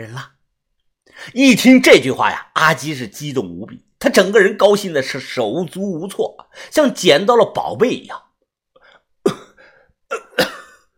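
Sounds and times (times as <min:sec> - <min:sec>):
speech: 0:00.0 - 0:00.4, 0:01.2 - 0:08.2
person lying on the ground coughing: 0:09.2 - 0:10.9.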